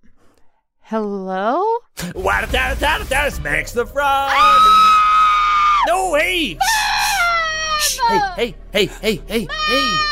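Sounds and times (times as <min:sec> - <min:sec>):
speech: 0:00.9 - 0:04.9, 0:05.8 - 0:06.8, 0:08.1 - 0:10.1
child screaming: 0:04.3 - 0:05.9, 0:06.6 - 0:08.3, 0:09.5 - 0:10.1.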